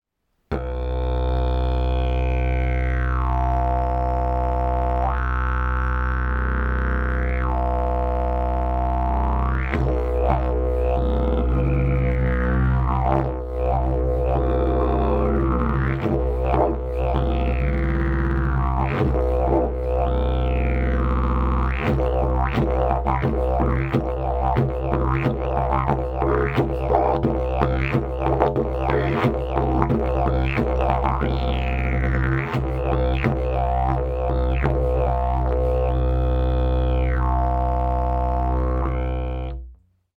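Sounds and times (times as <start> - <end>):
didgeridoo: 0.5 - 39.8.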